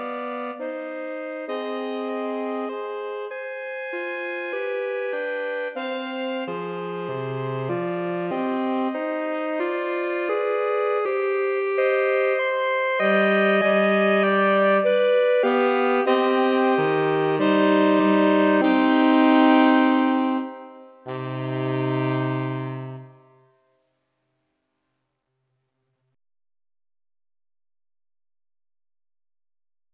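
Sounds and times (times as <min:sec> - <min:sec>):
saxophone trio: 0:00.0 - 0:23.5.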